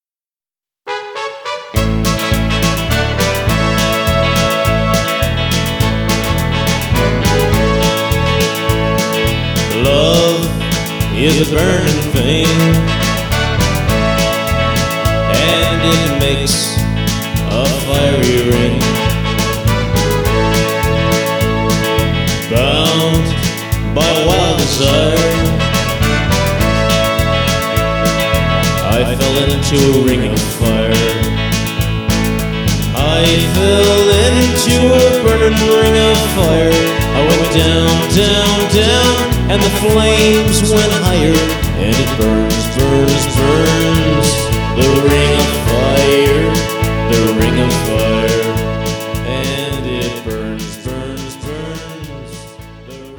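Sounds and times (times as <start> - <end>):
classic rock band playing: 0.9 - 53.1.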